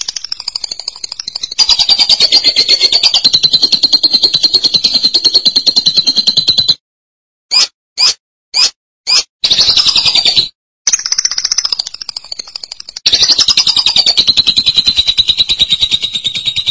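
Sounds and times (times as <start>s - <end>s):
lovebird buzzy chatter: 0.0s - 6.7s, 9.1s - 16.6s.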